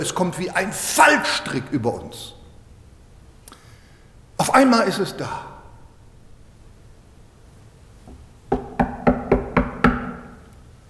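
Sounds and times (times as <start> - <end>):
speech: 0.0 - 2.4, 4.5 - 5.5
knocking on a door: 8.5 - 10.4.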